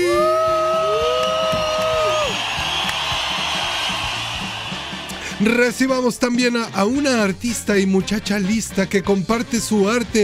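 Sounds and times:
audience applause and cheering: 0.0s - 6.2s
speech: 5.4s - 10.2s.

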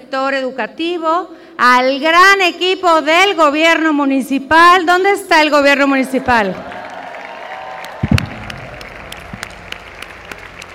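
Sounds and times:
speech: 0.1s - 6.7s
audience applause: 6.6s - 10.7s.

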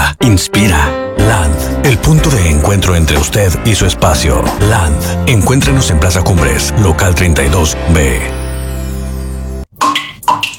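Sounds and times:
speech: 0.2s - 8.4s
water dripping from a leak: 9.7s - 10.5s.

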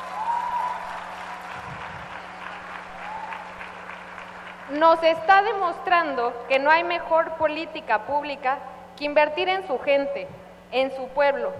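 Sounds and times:
audience applause for the governor of Tabasco state: 0.0s - 5.0s
speech: 4.7s - 11.5s.

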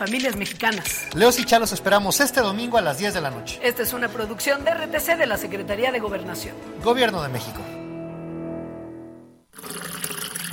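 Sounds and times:
speech: 0.0s - 7.8s
water running from a tap into a glass: 9.5s - 10.5s.

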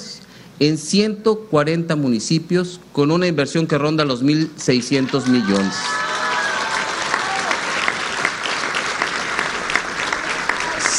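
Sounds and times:
speech: 0.6s - 6.1s
audience applause: 4.8s - 10.9s.

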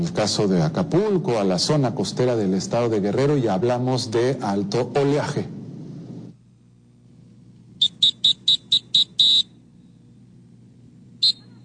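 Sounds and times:
speech: 0.0s - 5.6s
lifeguard warning whistle: 7.8s - 9.6s, 11.2s - 11.6s.

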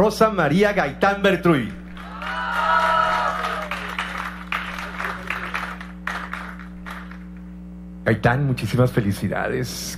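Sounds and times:
speech: 0.0s - 2.4s, 8.1s - 9.9s
low electrical hum: 0.0s - 9.9s
audience applause at a tribute event: 1.9s - 7.2s.

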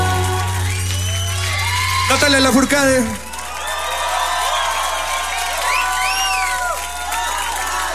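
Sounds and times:
crowd applause for a band: 0.0s - 7.9s
rising and falling whistles: 0.5s - 2.0s, 5.6s - 6.6s
speech: 2.1s - 3.2s.

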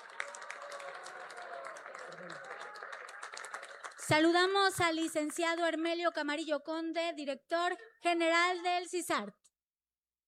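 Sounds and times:
audience applause: 0.0s - 5.4s
speech: 4.1s - 9.4s.

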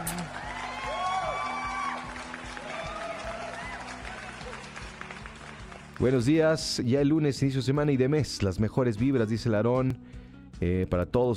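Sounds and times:
applause sound effect: 0.0s - 6.6s
speech: 6.0s - 11.3s.

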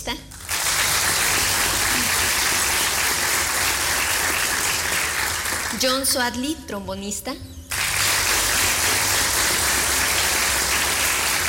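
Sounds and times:
loud applause: 0.4s - 5.8s, 7.7s - 11.4s
speech: 5.8s - 7.5s.

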